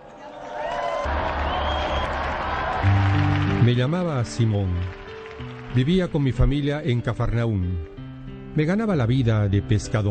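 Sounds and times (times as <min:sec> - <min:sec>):
crowd cheers: 0:00.0 - 0:06.4
audience clapping: 0:00.6 - 0:07.5
speech: 0:03.7 - 0:05.0, 0:05.8 - 0:07.9, 0:08.6 - 0:10.0.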